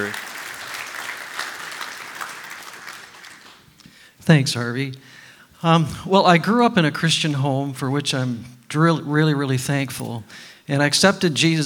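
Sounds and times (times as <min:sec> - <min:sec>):
speech: 0:00.0 - 0:00.3, 0:04.3 - 0:11.6
audience applause welcoming a speaker: 0:00.0 - 0:03.8.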